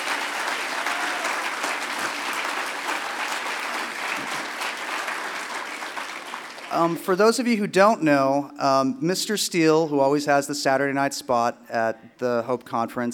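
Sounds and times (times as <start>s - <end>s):
audience applause: 0.0s - 7.1s
speech: 6.7s - 13.1s.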